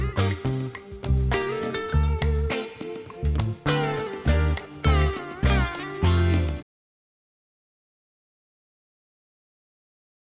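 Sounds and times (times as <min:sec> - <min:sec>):
music without drums: 0:00.0 - 0:06.6.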